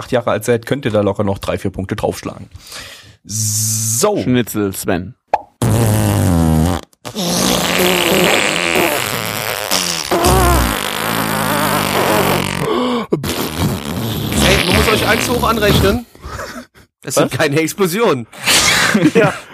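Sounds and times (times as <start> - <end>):
speech: 0.0 - 5.2, 15.1 - 16.2, 17.0 - 19.5
fart sound effect: 5.5 - 16.0
laughter: 18.8 - 19.5.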